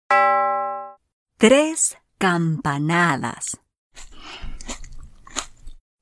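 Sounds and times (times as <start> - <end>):
speech: 1.4 - 4.1
crunchy chewing of grapes: 4.0 - 5.8.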